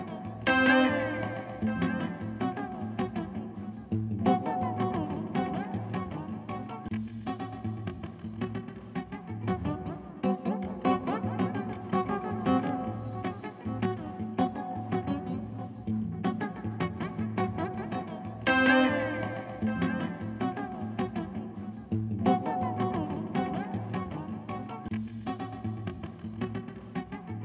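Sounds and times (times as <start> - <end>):
guitar: 0.0 - 27.4.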